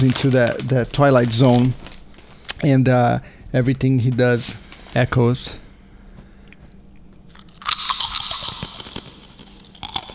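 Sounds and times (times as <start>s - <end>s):
speech: 0.0s - 1.8s, 2.6s - 5.6s
person crunching potato chips: 0.0s - 2.6s, 6.3s - 10.1s.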